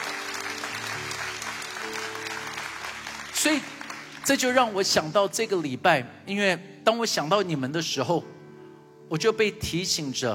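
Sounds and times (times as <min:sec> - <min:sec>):
audience applause: 0:00.0 - 0:04.8
speech: 0:03.4 - 0:08.4, 0:09.1 - 0:10.3.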